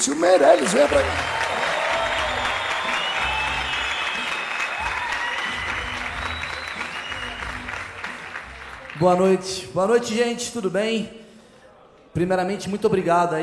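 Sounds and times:
speech: 0.0s - 1.4s, 9.0s - 11.2s, 12.2s - 13.4s
crowd applauding: 0.0s - 9.4s
cheers and whoops: 0.4s - 7.5s.

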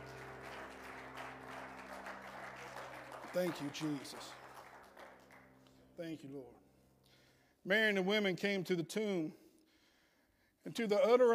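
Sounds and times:
audience hand clapping in praise: 0.0s - 5.8s
speech: 3.3s - 4.4s, 6.0s - 6.6s, 7.6s - 9.4s, 10.6s - 11.3s.

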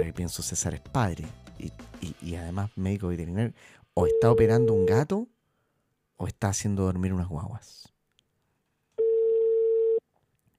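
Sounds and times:
speech: 0.0s - 5.3s, 6.2s - 7.9s
telephone ringback tone: 9.0s - 10.0s.

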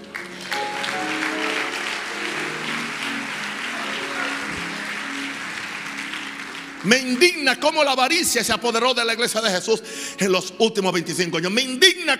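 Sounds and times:
murmur of voices: 0.0s - 6.0s
audience applause: 0.0s - 8.0s
speech: 6.8s - 12.1s.

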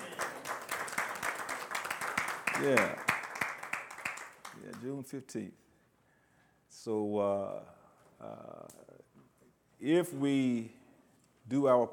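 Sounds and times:
audience hand clapping: 0.0s - 5.0s
speech: 2.6s - 3.0s, 4.7s - 5.6s, 6.8s - 10.8s, 11.5s - 11.9s.

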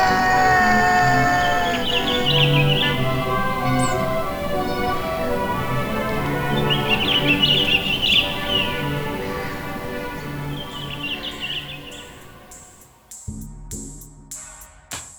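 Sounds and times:
laughter: 0.0s - 11.5s
sustained tones: 0.0s - 12.7s
wild birds twittering: 0.0s - 12.8s.

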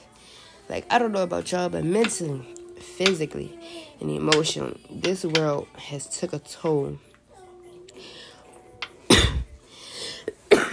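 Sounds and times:
speech: 0.7s - 7.1s
harsh coughing after smoking a blunt: 9.1s - 9.6s, 10.2s - 10.7s.

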